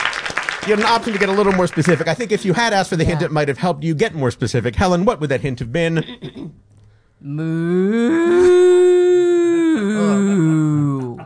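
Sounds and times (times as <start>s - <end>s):
speech: 0.6s - 6.6s, 7.2s - 8.7s
person imitating a cow mooing: 7.2s - 11.2s.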